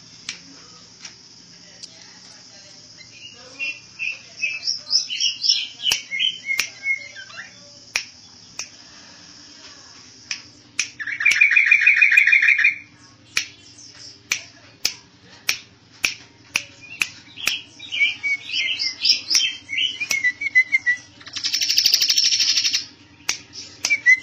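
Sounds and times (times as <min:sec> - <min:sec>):
bird singing trill, chirps and whistles: 0:03.0 - 0:08.7, 0:10.5 - 0:14.4, 0:16.5 - 0:24.2.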